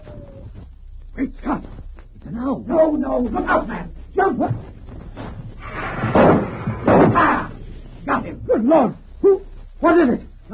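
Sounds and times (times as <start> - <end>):
speech: 1.2 - 4.7, 8.1 - 10.5
heavy elm tree limb crashing down: 5.2 - 7.7.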